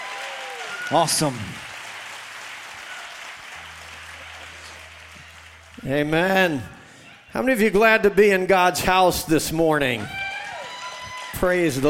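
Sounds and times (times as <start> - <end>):
audience applause: 0.0 - 7.3, 10.0 - 11.8
speech: 0.9 - 1.7, 5.8 - 10.2, 11.4 - 11.8
low sustained organ-like tone: 2.7 - 7.7.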